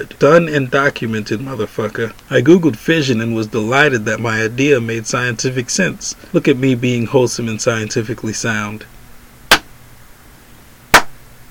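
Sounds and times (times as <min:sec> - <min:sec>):
speech: 0:00.0 - 0:09.0
faint hiss: 0:00.0 - 0:11.4
sharp hand claps: 0:10.9 - 0:11.2.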